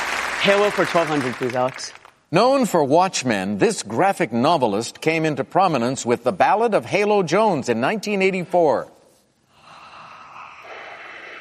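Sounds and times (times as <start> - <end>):
speech: 0.4 - 8.9
heavy breathing: 9.4 - 11.3.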